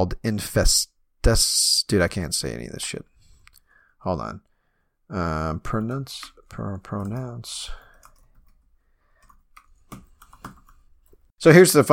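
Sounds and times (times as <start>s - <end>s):
speech: 0.0s - 3.1s, 4.0s - 4.5s, 5.1s - 7.8s, 11.4s - 11.9s
computer keyboard typing: 5.7s - 11.3s.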